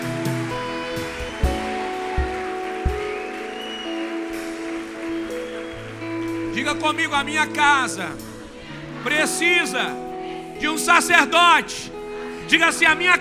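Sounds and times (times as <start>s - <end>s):
audience applauding: 0.0s - 8.0s
heavy thumps: 1.4s - 3.2s
speech: 6.6s - 8.3s, 9.0s - 10.0s, 10.6s - 13.1s.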